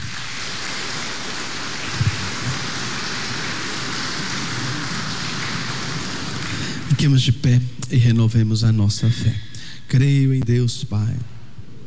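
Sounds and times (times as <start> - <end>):
crowd applauding: 0.0 - 7.3
speech: 7.0 - 11.3.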